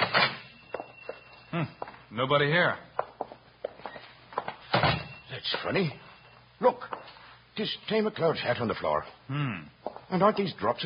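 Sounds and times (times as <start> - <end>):
speech: 1.6 - 2.9, 5.4 - 7.0, 7.6 - 10.8
shop door being opened: 4.7 - 5.2.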